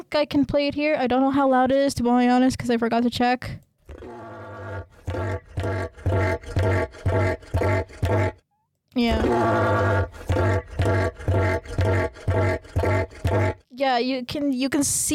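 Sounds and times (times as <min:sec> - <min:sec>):
speech: 0:00.1 - 0:03.7, 0:13.8 - 0:15.1
cassowary growling call: 0:03.9 - 0:08.4, 0:09.0 - 0:13.6.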